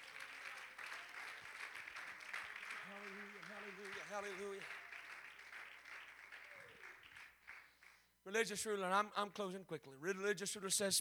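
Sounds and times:
audience clapping hands in praise: 0.0 - 8.7
speech: 2.9 - 4.8, 8.2 - 11.0.

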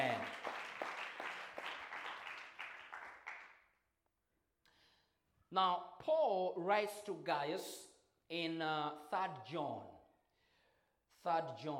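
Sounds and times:
audience clapping hands: 0.0 - 3.6
speech: 5.5 - 9.9, 11.2 - 11.7.

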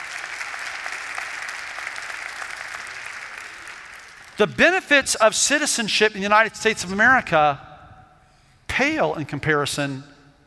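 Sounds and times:
audience applause: 0.0 - 4.4
speech: 4.4 - 7.7, 8.8 - 10.1.

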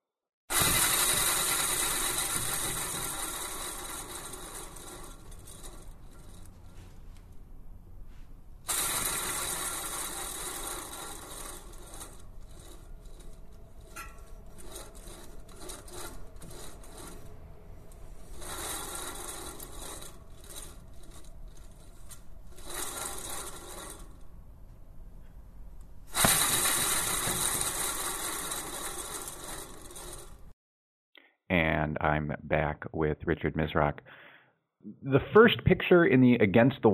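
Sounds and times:
sound sculpture made from a bicycle wheel scraping and rasping: 0.5 - 7.5, 8.6 - 24.9, 26.0 - 30.6
speech: 32.2 - 34.2, 35.0 - 36.9.

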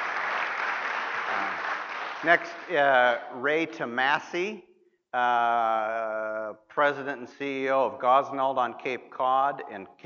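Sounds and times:
applause: 0.0 - 3.2
speech: 2.2 - 10.0.

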